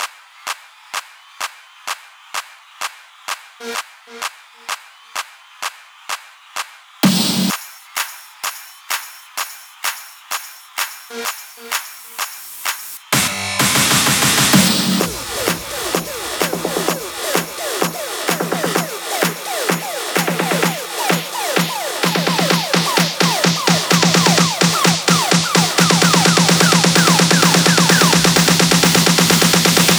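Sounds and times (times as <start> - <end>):
drum loop without bass drum: 6.6 - 29.9.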